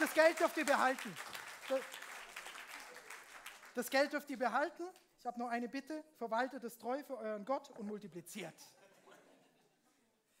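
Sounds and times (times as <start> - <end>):
audience applause: 0.0 - 3.8
speech: 0.2 - 2.0, 3.8 - 8.8.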